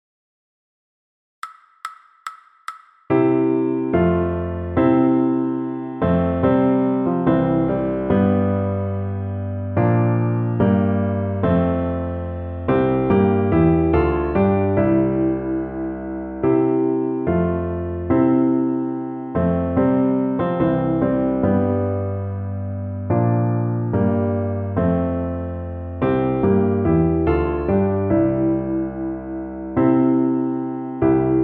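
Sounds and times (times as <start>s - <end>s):
piano: 3.1s - 31.4s.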